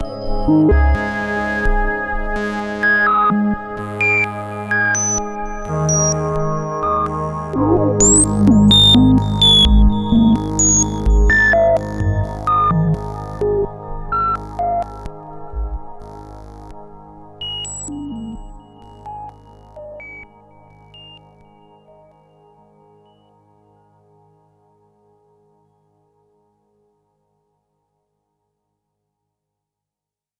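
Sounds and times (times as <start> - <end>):
synthesizer VCF with random modulation: 0.0 - 23.3.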